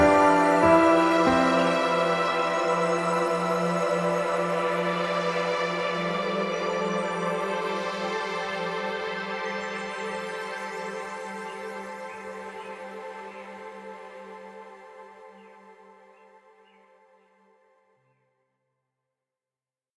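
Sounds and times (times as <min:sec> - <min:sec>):
piano: 0:00.0 - 0:09.2.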